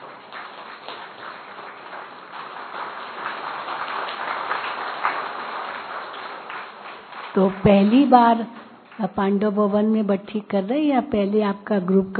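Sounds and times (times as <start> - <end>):
audience clapping: 0.0 - 9.0
speech: 7.4 - 12.1.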